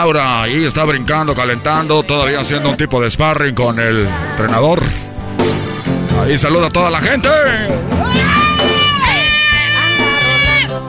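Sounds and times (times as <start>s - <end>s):
speech: 0.0s - 5.1s, 6.2s - 8.4s
crowd ovation for boxer entering ring: 7.0s - 10.8s.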